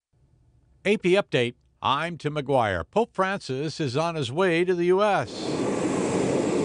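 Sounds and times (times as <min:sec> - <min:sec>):
speech: 0:00.8 - 0:05.6
jet engines of Pope Francis's plane leaving the airport in Santiago, Cuba: 0:05.2 - 0:06.6.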